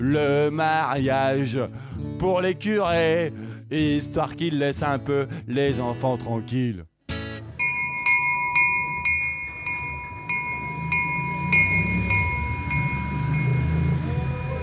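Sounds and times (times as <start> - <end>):
speech: 0.0 - 6.9
bell dinging as a train leaves the station at Lourdes: 7.6 - 14.6
train pulling out of the station at Lourdes: 8.2 - 14.6.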